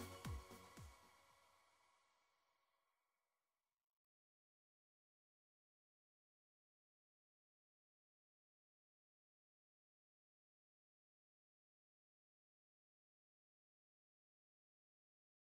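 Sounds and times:
italo disco instrumental on Korg Pa4X keyboard: 0.0 - 1.2.

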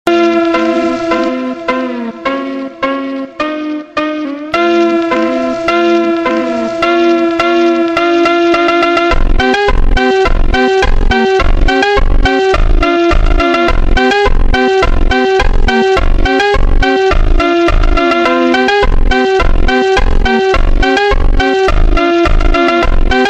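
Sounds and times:
super slowed funk music: 0.1 - 23.2.

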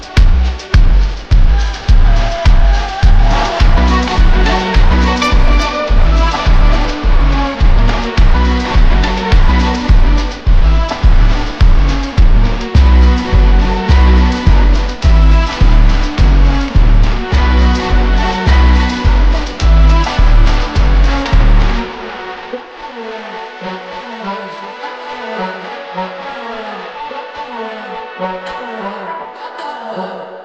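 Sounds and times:
slowed Brazilian funk music stadium version: 0.0 - 22.9.

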